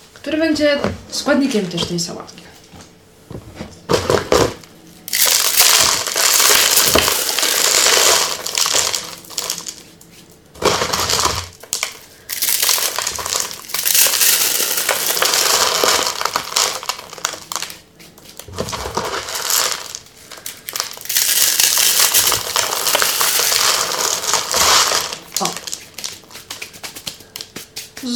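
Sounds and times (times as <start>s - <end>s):
speech: 0.2s - 2.6s
dry instant noodles being crushed: 5.1s - 9.9s, 10.6s - 28.0s.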